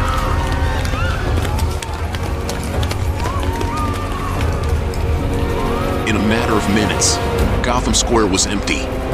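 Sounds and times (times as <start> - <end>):
many hurried footsteps of citizens running across a city square: 0.0 - 7.7
crowd commotion and overlapping voices: 0.0 - 7.8
speech: 6.7 - 9.0.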